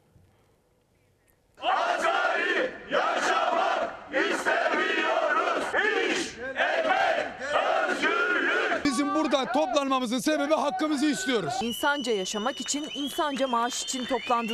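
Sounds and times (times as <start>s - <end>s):
workers' protest crowd chanting: 1.6s - 9.3s
speech: 9.8s - 14.5s.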